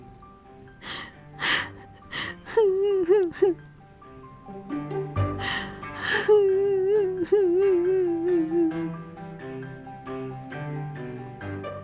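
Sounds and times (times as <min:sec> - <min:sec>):
girl crying and sobbing: 0:00.9 - 0:03.6, 0:05.4 - 0:08.9.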